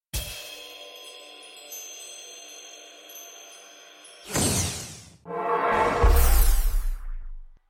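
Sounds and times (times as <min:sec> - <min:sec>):
portal sound: 0:05.2 - 0:07.6.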